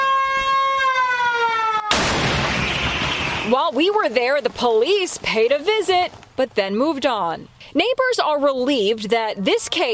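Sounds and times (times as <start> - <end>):
warning siren: 0.0 - 3.6
cannon blast: 1.9 - 3.6
speech: 3.5 - 9.9.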